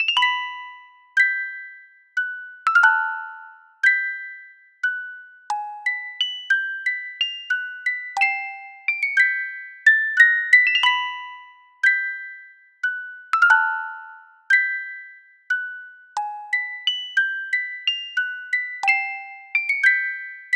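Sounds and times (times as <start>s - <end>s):
music box: 0.0s - 20.5s.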